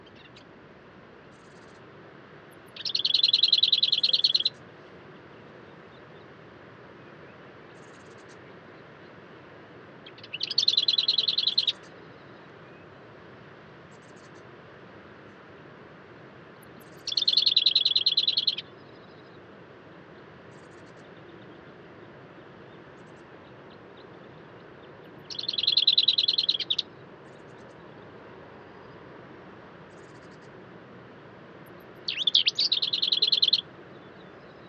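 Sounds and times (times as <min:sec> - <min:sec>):
soft steady hiss: 0:00.0 - 0:34.6
buzzy bird call at daybreak at Col du Granon: 0:02.8 - 0:04.5, 0:25.3 - 0:26.8, 0:32.0 - 0:33.6.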